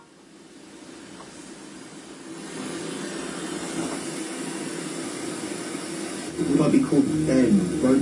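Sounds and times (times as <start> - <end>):
radio waves: 5.5 - 8.0.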